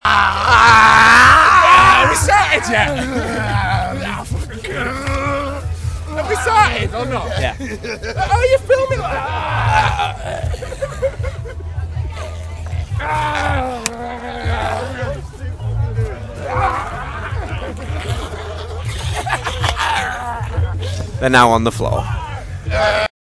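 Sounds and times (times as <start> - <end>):
zombie groan: 0.0 - 5.7, 9.0 - 10.7, 12.6 - 15.2, 19.6 - 20.9, 22.6 - 23.1
laughter: 0.3 - 21.2.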